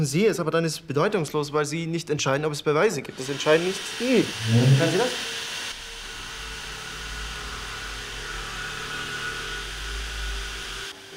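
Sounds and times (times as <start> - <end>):
speech: 0.0 - 5.4
drilling: 3.0 - 11.0.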